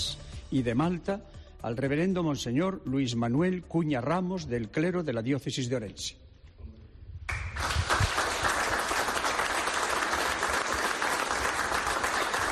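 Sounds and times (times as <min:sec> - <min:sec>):
speech: 0:00.5 - 0:06.3
applause from clergy audience: 0:07.3 - 0:12.5.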